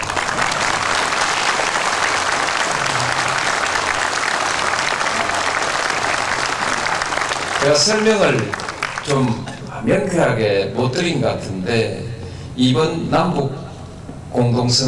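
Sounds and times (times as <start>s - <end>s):
large audience clapping: 0.0s - 9.7s
speech: 7.7s - 12.0s, 12.6s - 13.6s, 14.3s - 14.8s.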